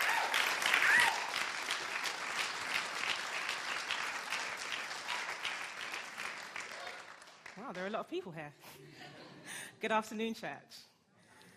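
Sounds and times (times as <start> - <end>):
church congregation applauding to welcome a speaker: 0.0 - 8.0
speech: 7.7 - 9.1, 9.8 - 10.9.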